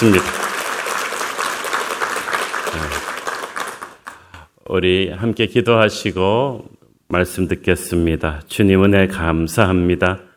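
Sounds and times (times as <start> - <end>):
speech: 0.0 - 0.4, 4.7 - 10.3
audience applause: 0.0 - 4.3.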